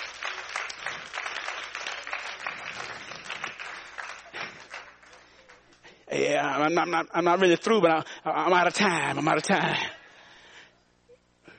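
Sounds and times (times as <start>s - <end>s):
audience applause: 0.0s - 5.8s
speech: 6.1s - 9.9s.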